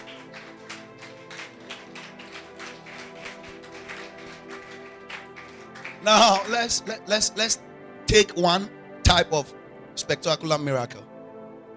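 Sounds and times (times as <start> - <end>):
audience clapping: 0.0 - 7.1
speech: 6.0 - 11.1.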